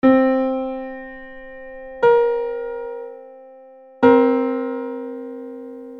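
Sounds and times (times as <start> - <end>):
dissonant tone: 1.0 - 3.4, 4.0 - 5.9.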